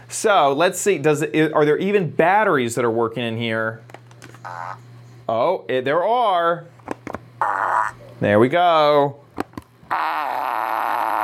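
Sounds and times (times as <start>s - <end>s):
speech: 0.1s - 6.8s, 7.4s - 9.2s, 9.9s - 10.8s
7-in-1 toy fart machine from Amazon: 4.3s - 4.8s, 7.4s - 8.1s, 9.8s - 11.2s.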